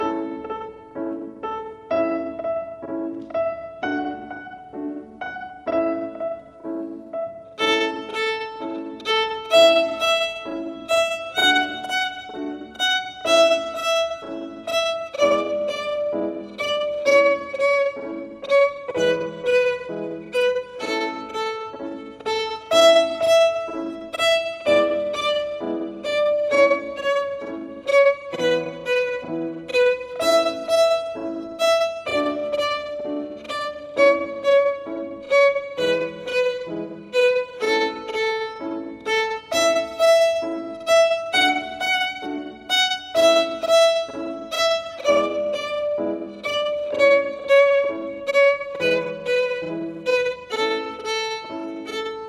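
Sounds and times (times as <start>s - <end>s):
slow violin melody: 0.0s - 52.2s.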